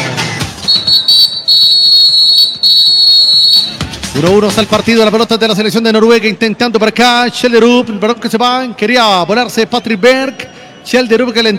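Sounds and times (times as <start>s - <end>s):
referee's whistle blast starting second half: 0.6s - 3.8s
speech: 4.2s - 11.5s.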